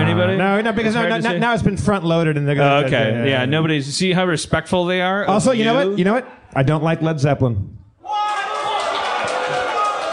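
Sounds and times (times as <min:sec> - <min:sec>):
speech: 0:00.2 - 0:07.8
audience applause: 0:08.2 - 0:10.1.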